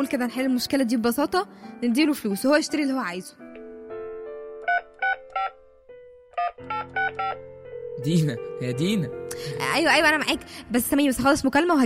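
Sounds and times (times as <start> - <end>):
speech: 0.0 - 3.4, 6.6 - 11.8
telephone number being dialed: 4.7 - 5.5, 6.4 - 7.4.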